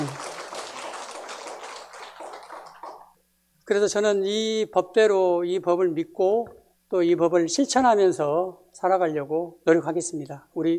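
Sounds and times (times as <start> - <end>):
audience clapping: 0.0 - 3.2
speech: 3.7 - 10.7.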